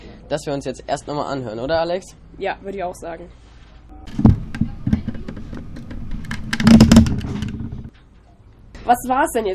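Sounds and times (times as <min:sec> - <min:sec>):
speech: 0:00.3 - 0:03.4, 0:08.9 - 0:09.5
sailing ship's mainmast creaking and groaning in heavy seas: 0:04.1 - 0:08.0.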